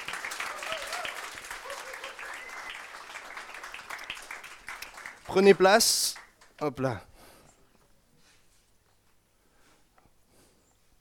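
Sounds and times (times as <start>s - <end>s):
audience applause: 0.0s - 7.0s
speech: 5.3s - 7.1s.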